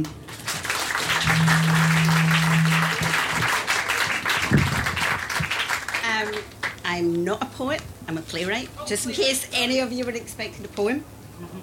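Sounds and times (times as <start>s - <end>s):
speech: 0.0s - 0.2s, 6.2s - 11.6s
audience applause welcoming a speaker to the stage: 0.3s - 6.4s.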